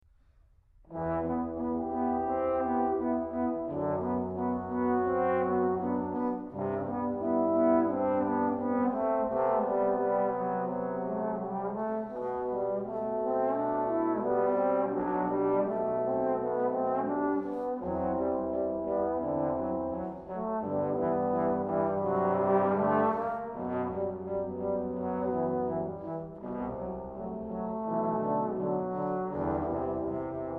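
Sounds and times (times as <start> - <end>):
piano preludes and fugues: 0.9 - 30.5.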